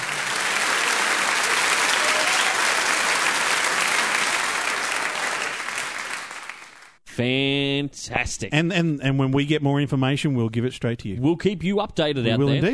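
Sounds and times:
round of applause: 0.0s - 7.0s
speech: 7.2s - 12.7s.

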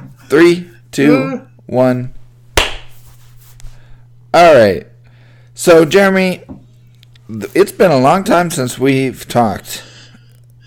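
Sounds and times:
speech: 0.3s - 2.2s, 4.4s - 4.9s, 5.6s - 6.6s, 7.3s - 9.9s
single sharp hand clap: 2.6s - 3.0s.

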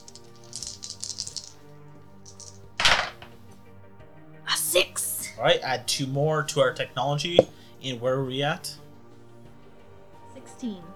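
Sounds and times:
dice being shaken: 0.0s - 1.6s, 2.2s - 3.4s
speech: 4.8s - 8.8s, 10.6s - 10.9s.

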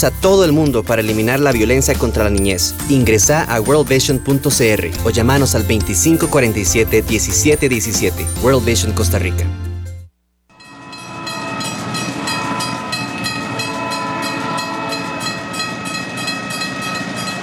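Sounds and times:
speech: 0.0s - 9.7s
train horn: 10.6s - 17.2s.

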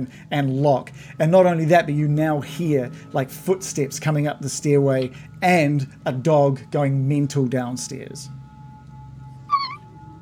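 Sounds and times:
speech: 0.0s - 8.4s
person imitating a mouse squeak: 9.5s - 9.9s.

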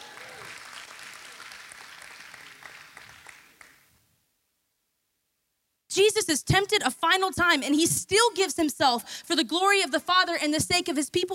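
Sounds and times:
audience clapping: 0.0s - 3.9s
speech: 6.0s - 11.3s.

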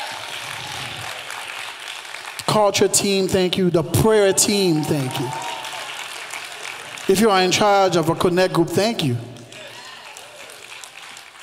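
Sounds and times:
audience applauding: 0.0s - 3.4s, 4.0s - 8.0s, 9.0s - 11.4s
speech: 2.6s - 5.5s, 7.1s - 9.3s.

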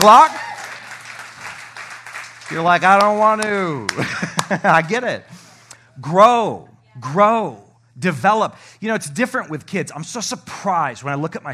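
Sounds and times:
speech: 0.0s - 0.4s, 2.5s - 5.4s, 6.0s - 11.5s
crowd clapping: 0.0s - 5.1s
laughter: 3.8s - 5.2s.

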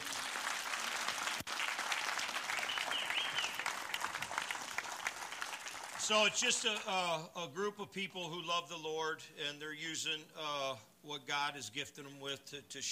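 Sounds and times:
audience applause: 0.0s - 6.7s
speech: 6.1s - 12.8s.

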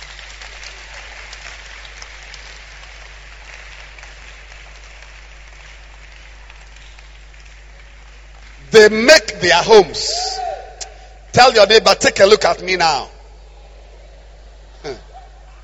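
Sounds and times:
audience clapping: 0.0s - 9.2s
speech: 8.8s - 10.4s, 11.4s - 13.1s.

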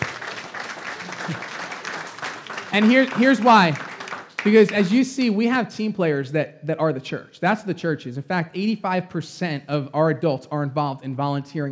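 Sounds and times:
church congregation clapping honoring a volunteer: 0.0s - 5.1s
speech: 1.3s - 1.5s, 2.7s - 3.8s, 4.4s - 11.6s.

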